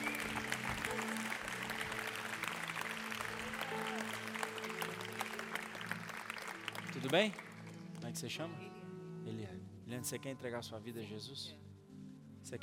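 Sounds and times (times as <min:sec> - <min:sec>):
audience applause: 0:00.0 - 0:07.8
speech: 0:07.0 - 0:07.5, 0:08.1 - 0:11.6, 0:12.4 - 0:12.6.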